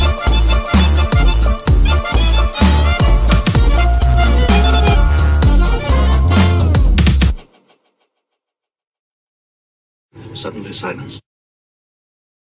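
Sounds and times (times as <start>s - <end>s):
remixed gaming background music: 0.1s - 7.4s.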